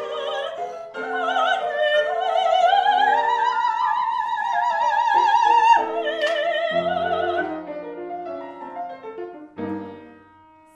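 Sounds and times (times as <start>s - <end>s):
soprano singing: 0.0s - 8.1s.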